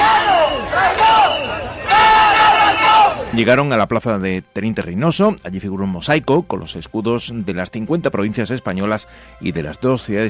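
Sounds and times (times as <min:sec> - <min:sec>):
protest crowd shouting: 0:00.0 - 0:03.4
speech: 0:03.4 - 0:10.2.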